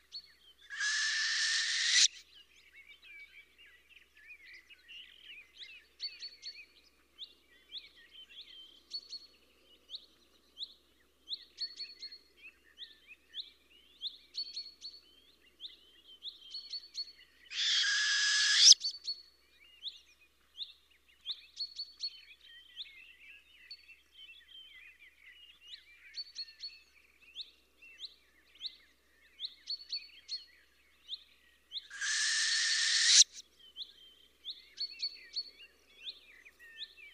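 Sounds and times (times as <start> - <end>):
small birds twittering and chirping: 0.6 - 2.2, 17.5 - 18.9, 31.9 - 37.1
owl screech: 0.7 - 2.2, 17.5 - 18.8, 31.9 - 33.4.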